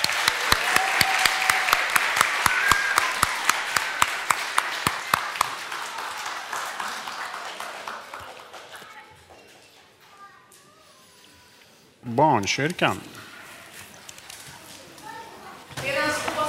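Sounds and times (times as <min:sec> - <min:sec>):
audience applauding: 0:00.0 - 0:09.1
speech: 0:12.2 - 0:13.1.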